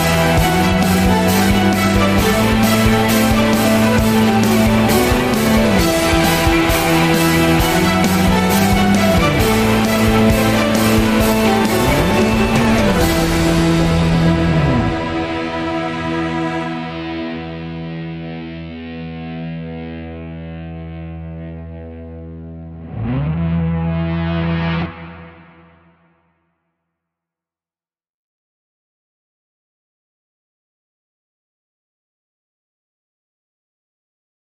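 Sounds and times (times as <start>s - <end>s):
scary dramatic zombie chase music: 0.0s - 19.4s, 22.7s - 26.0s.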